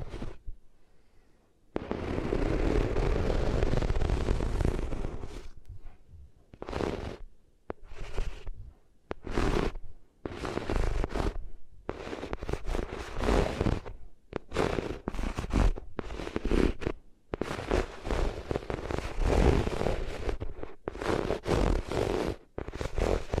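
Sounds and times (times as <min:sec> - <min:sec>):
ears rubbing against different materials: 0:00.0 - 0:00.5, 0:01.8 - 0:06.0, 0:06.6 - 0:23.3.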